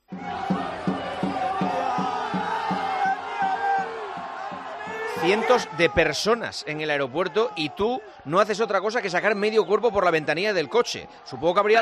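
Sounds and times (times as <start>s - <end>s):
pounding beat of clapping or drumming: 0.0s - 5.5s
crowd of fans cheering and chanting at airport: 0.0s - 11.8s
speech: 5.2s - 11.8s.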